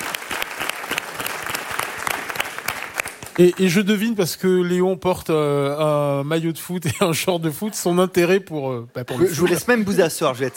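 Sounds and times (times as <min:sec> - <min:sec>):
audience applauding: 0:00.0 - 0:03.9
speech: 0:03.4 - 0:10.5.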